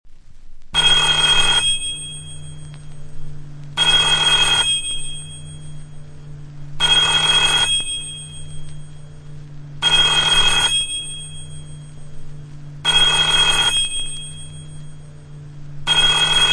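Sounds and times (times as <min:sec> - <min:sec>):
telephone ringing: 0:00.8 - 0:03.0, 0:03.8 - 0:06.0, 0:06.8 - 0:09.2, 0:09.8 - 0:12.2, 0:12.8 - 0:15.2, 0:15.8 - 0:16.5.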